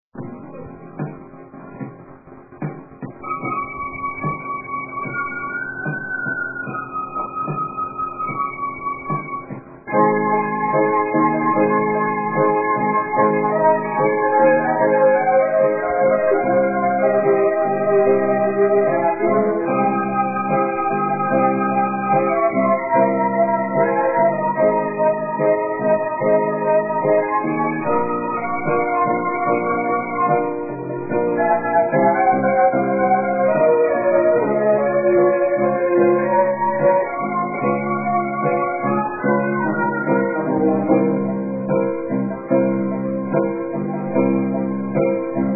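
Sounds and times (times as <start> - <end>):
slow keyboard music: 0.2 - 45.5.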